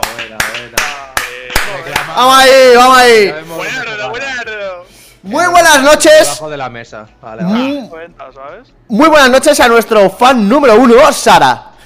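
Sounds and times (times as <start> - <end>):
hands clapping: 0.0 - 2.3
speech: 2.2 - 4.3, 5.2 - 11.7.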